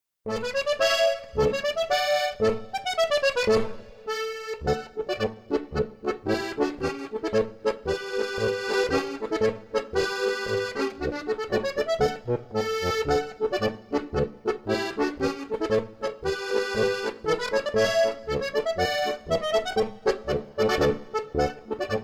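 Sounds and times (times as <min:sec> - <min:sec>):
accordion duo playing polka: 0:00.3 - 0:22.0.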